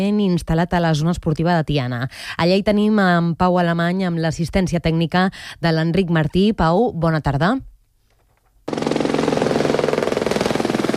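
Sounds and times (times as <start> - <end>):
speech: 0.0 - 7.7, 8.7 - 8.9
firefighting helicopter rotor overhead: 8.7 - 10.9.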